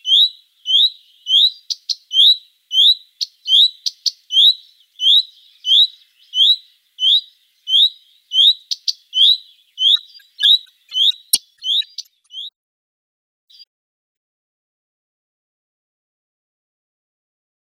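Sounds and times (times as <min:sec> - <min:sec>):
Common Redstart giving rising whistled calls: 0:00.0 - 0:12.5.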